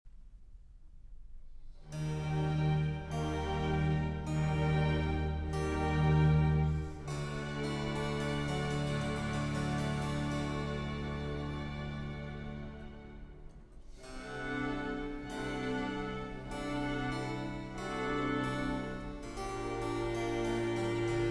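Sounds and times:
concerto for four violins: 1.8s - 21.2s.

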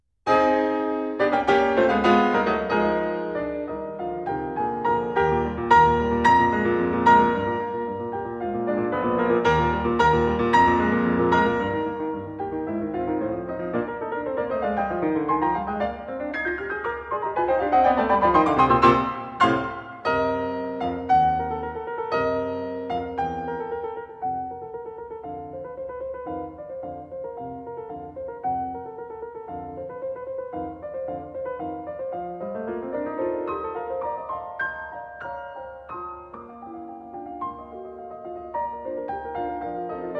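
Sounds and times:
piano sonata in E-flat major: 0.0s - 40.1s.

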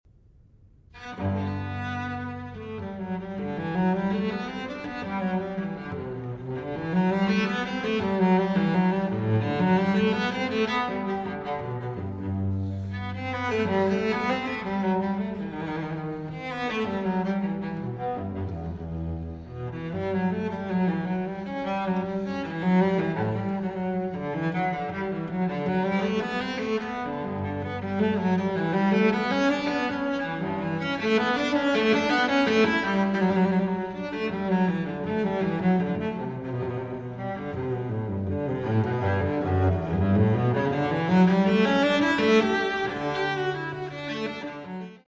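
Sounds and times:
solo cello suite in G major: 0.8s - 45.0s.

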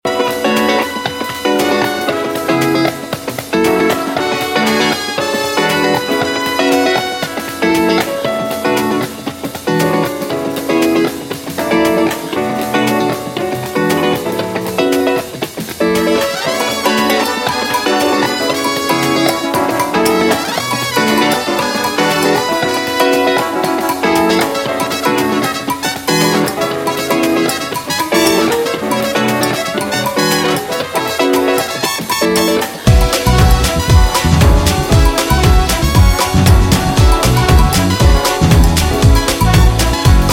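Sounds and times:
Cuban swing jazz: 0.0s - 40.3s.

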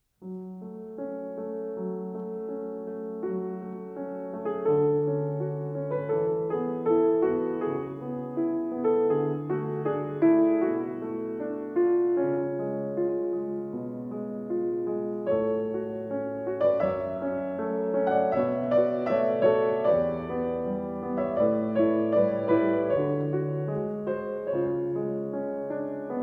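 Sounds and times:
pavane arranged for piano: 0.0s - 26.2s.

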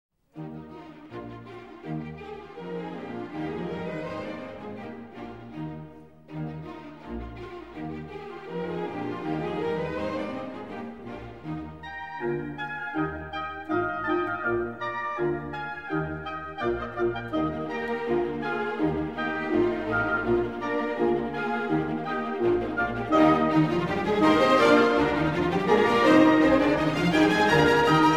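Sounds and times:
violin and viola piece in a fast tempo: 0.3s - 28.1s.

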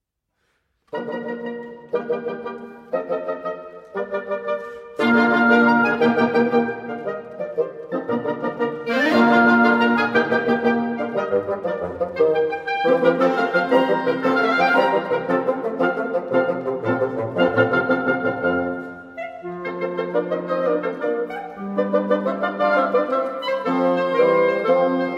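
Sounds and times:
classical divertimento in B-flat major: 0.3s - 25.1s.

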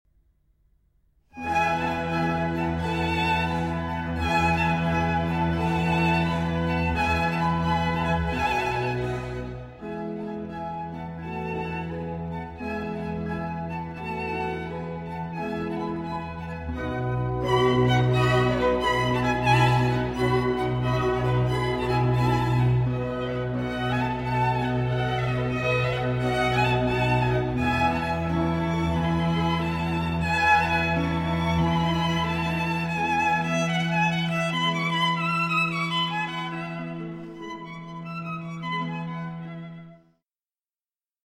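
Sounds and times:
concerto for violin and strings in E: 1.4s - 39.9s.

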